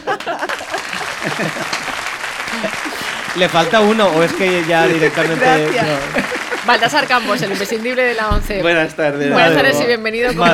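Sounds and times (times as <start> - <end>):
audience applause: 0.0 - 8.3
laughter: 0.0 - 10.5
speech: 1.2 - 1.8, 2.5 - 10.5.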